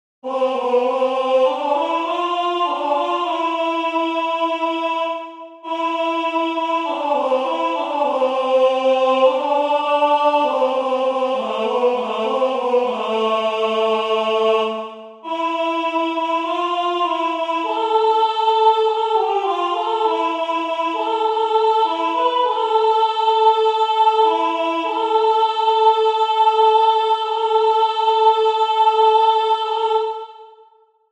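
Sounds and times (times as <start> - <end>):
alto voice: 0.2 - 30.4.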